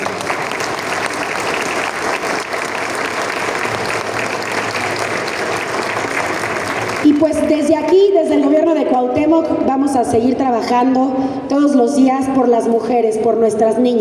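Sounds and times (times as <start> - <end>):
audience applause: 0.0 - 7.6
speech: 7.2 - 13.9.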